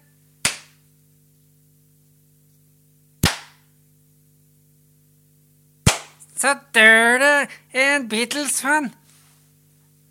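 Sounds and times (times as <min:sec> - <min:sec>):
sharp hand claps: 0:00.4 - 0:00.8, 0:03.2 - 0:03.7, 0:05.9 - 0:06.2
speech: 0:06.4 - 0:09.0.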